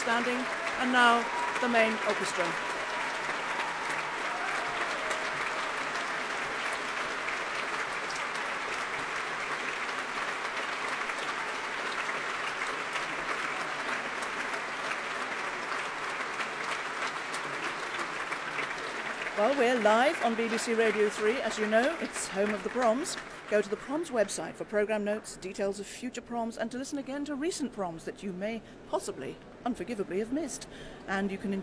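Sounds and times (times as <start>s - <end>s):
audience clapping at the BBC Proms after a concerto: 0.0s - 24.8s
speech: 0.1s - 2.7s, 19.4s - 31.6s.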